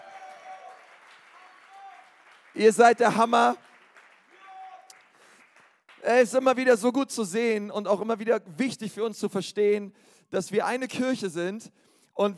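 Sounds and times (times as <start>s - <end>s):
audience applauding: 0.0s - 6.4s
speech: 2.6s - 3.6s, 6.1s - 12.3s.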